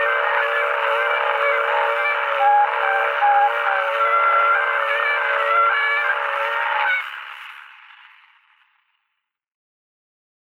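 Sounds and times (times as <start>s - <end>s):
torupill bagpipe playing a folk tune in Emmaste: 0.0s - 7.6s.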